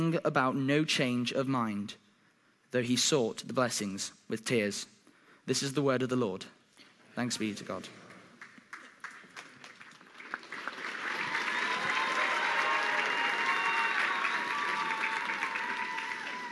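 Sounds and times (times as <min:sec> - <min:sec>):
speech: 0:00.0 - 0:02.0, 0:02.7 - 0:06.6, 0:07.2 - 0:08.0
audience applause: 0:08.0 - 0:16.5
cheering: 0:10.4 - 0:16.5.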